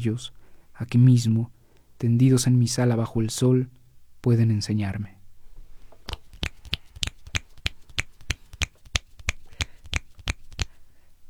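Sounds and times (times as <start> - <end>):
speech: 0.0 - 5.2
audience finger snapping: 6.1 - 10.8.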